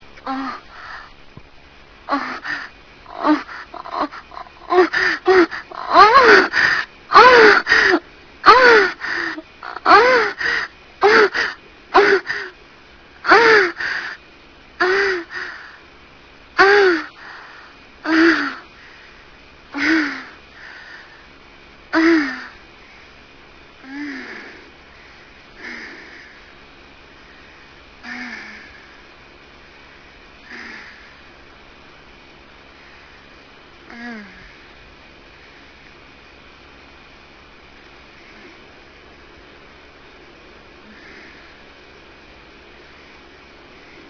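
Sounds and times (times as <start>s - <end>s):
person moaning: 0.2s - 1.0s, 2.1s - 12.5s, 13.2s - 14.0s, 14.8s - 15.7s, 16.6s - 17.2s, 18.1s - 18.6s, 19.8s - 20.4s, 22.0s - 22.6s, 23.8s - 24.6s, 28.0s - 28.7s, 33.9s - 34.6s.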